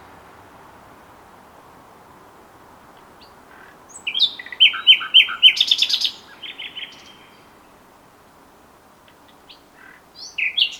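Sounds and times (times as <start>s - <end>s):
common nightingale Luscinia megarhynchos singing: 3.0s - 7.7s, 9.1s - 10.7s.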